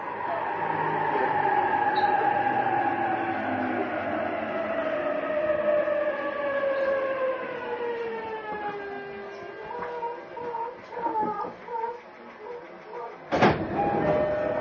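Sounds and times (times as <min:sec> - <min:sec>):
JR East E233 series train motor whine slowing: 0:00.0 - 0:14.6
train clunks and rattles: 0:10.7 - 0:14.6.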